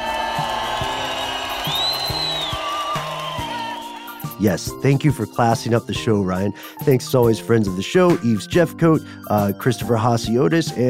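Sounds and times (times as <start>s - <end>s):
wild applause sound effect cue: 0.0s - 4.4s
speech: 4.4s - 10.8s.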